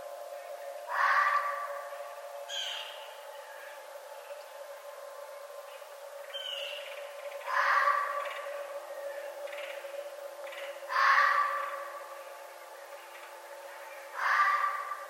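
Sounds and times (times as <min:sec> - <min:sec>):
red fox screaming: 0:00.9 - 0:01.7, 0:07.4 - 0:08.4, 0:10.9 - 0:11.8, 0:14.2 - 0:15.0.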